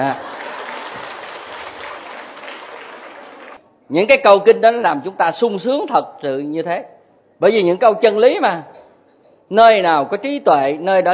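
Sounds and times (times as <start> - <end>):
speech: 0.0 - 0.3, 3.9 - 8.8, 9.5 - 11.1
audience applause at a Buddhist dharma talk: 0.0 - 3.6.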